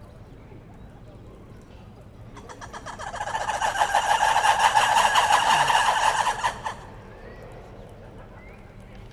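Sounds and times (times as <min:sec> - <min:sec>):
red ruffed lemurs calling in chorus at Veszprem zoo: 0:02.5 - 0:07.1.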